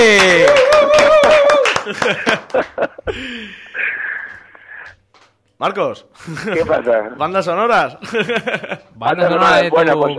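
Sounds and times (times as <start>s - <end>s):
applause: 0.0s - 2.8s
laughter: 0.7s - 4.4s, 6.2s - 7.1s, 8.0s - 9.3s
speech: 1.9s - 4.1s, 5.6s - 10.1s.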